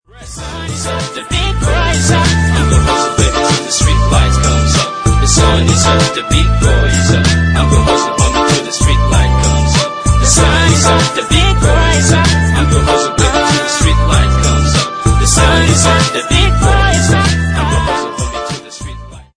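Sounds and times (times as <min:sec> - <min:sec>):
iPhone ringtone: 0:00.4 - 0:18.8.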